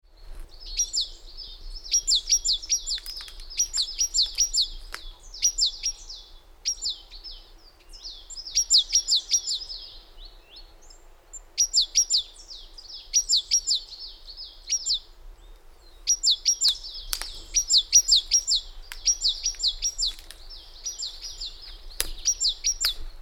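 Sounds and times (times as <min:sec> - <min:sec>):
great tit calls: 0:00.5 - 0:23.2.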